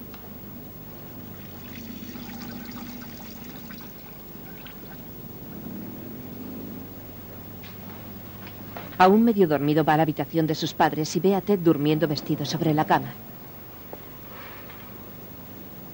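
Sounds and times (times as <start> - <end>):
boy urinating into toilet: 1.3 - 5.1
speech: 9.0 - 13.3.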